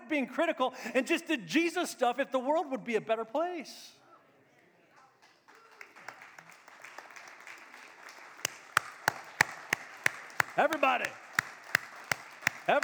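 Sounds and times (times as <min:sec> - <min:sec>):
speech: 0:00.1 - 0:04.0, 0:10.6 - 0:11.2, 0:12.7 - 0:12.8
audience clapping hands: 0:04.9 - 0:12.8.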